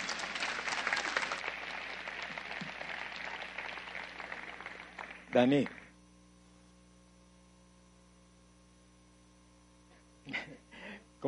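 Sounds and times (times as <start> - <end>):
audience applause: 0.0 - 5.9
speech: 5.3 - 5.8.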